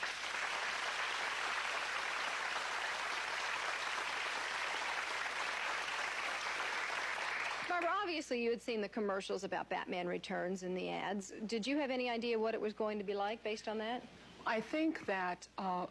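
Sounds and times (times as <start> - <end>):
studio audience applause welcoming talk show guests: 0.0 - 7.8
speech: 7.8 - 15.8.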